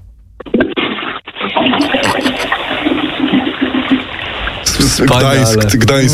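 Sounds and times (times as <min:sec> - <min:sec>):
toilet being flushed: 0:00.5 - 0:06.1.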